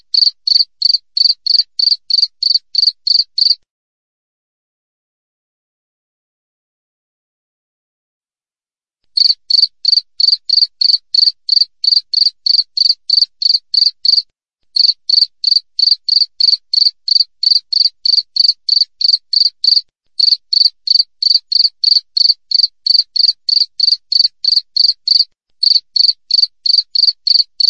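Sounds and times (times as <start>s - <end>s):
cricket chirping: 0.1s - 3.6s, 9.2s - 14.2s, 14.8s - 27.6s.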